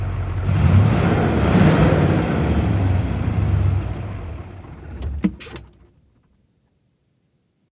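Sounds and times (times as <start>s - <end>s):
diesel V8 engine starting: 0.2s - 6.3s.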